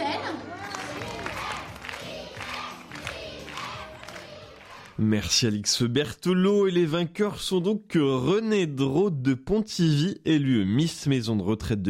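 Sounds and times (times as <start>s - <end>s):
excited crowd cheering: 0.0s - 5.0s
speech: 5.0s - 11.8s.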